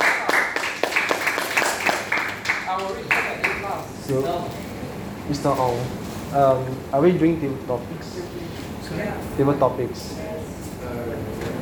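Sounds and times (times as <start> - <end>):
audience applause: 0.0 - 3.8
speech: 2.8 - 4.7, 5.3 - 11.6.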